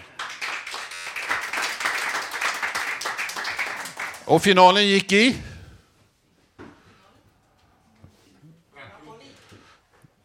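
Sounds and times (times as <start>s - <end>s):
audience applause: 0.0s - 4.6s
speech: 4.3s - 5.5s.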